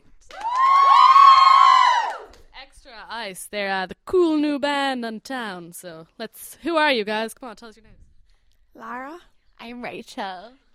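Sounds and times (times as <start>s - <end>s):
crowd cheering and whooping in welcome: 0.3s - 2.3s
speech: 3.3s - 8.0s, 8.8s - 10.7s.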